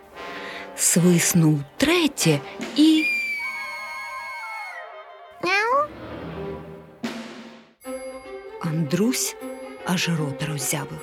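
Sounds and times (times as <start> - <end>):
speech: 0.8 - 3.1, 8.9 - 11.0
cat meowing: 5.4 - 5.9.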